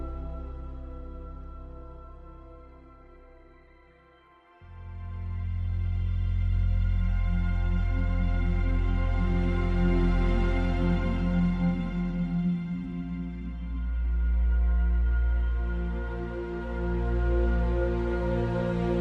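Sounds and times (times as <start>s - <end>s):
strings: 0.0s - 18.9s
synth pads: 0.0s - 18.9s.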